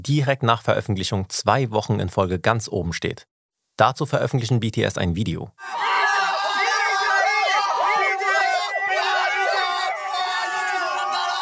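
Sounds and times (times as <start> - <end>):
speech: 0.0 - 5.9
group of people screaming and cheering: 5.6 - 11.3.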